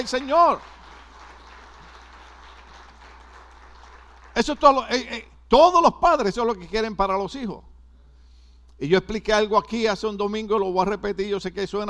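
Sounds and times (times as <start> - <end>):
speech: 0.0 - 0.8, 4.4 - 7.7, 8.8 - 11.8
audience applause: 0.0 - 4.6
low electrical hum: 0.0 - 11.8.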